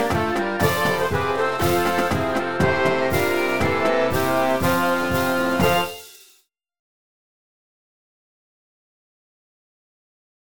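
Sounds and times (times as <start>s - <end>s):
marching band playing an arranged fight song: 0.0s - 6.3s.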